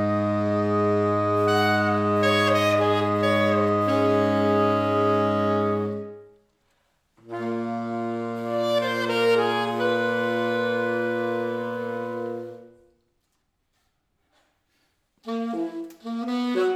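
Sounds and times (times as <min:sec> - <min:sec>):
saxophone quartet playing a Latvian folk song: 0:00.0 - 0:06.4, 0:07.2 - 0:13.1, 0:15.2 - 0:16.7.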